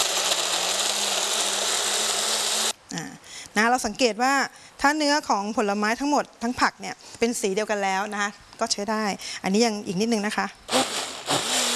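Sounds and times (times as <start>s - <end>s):
blender blending fruit: 0.0s - 2.8s, 10.7s - 11.7s
speech: 2.9s - 10.8s.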